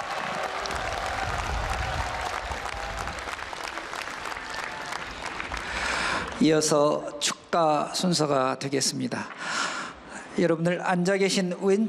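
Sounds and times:
audience cheering: 0.0s - 5.7s
audience applause: 0.0s - 6.4s
speech: 6.4s - 9.7s, 10.4s - 11.8s.

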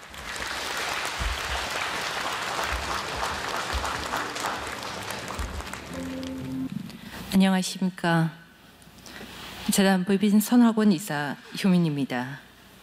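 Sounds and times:
warm audience applause: 0.0s - 6.7s
speech: 7.4s - 8.4s, 9.7s - 12.4s.

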